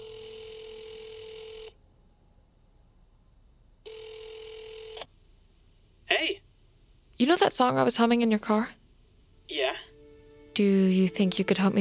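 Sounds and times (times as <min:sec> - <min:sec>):
phone call ringing tones: 0:00.0 - 0:01.8, 0:03.8 - 0:05.1
speech: 0:07.2 - 0:08.8, 0:10.6 - 0:11.7.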